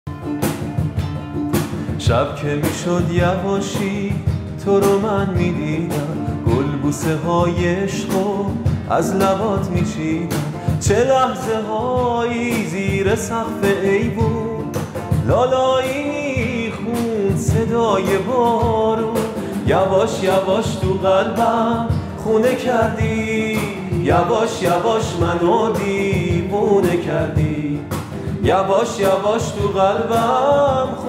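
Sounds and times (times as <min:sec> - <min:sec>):
guitar: 0:00.1 - 0:31.0.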